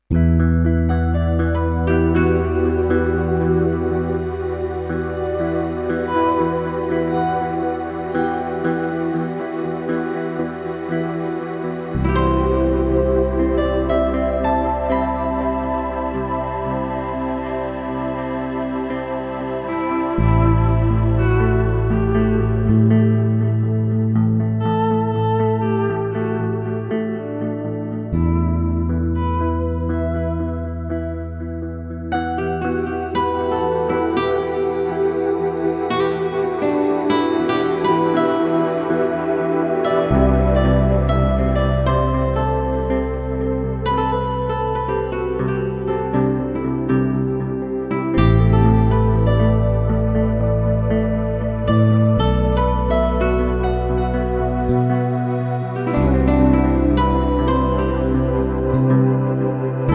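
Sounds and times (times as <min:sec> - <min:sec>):
twin guitar arpeggios: 0:00.0 - 0:59.9.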